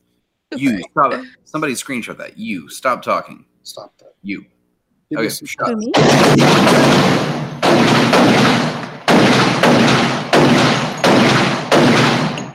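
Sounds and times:
speech: 0:00.5 - 0:07.4
gunshots: 0:06.0 - 0:12.5.

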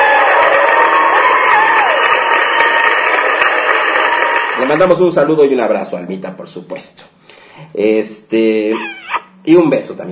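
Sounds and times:
cheering sound effect: 0:00.0 - 0:05.0
applause sound effect: 0:00.0 - 0:05.3
speech: 0:04.7 - 0:10.1.

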